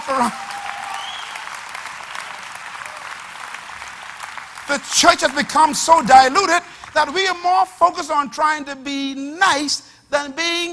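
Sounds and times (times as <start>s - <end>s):
audience clapping: 0.0s - 7.4s
speech: 0.1s - 0.5s, 4.7s - 10.7s.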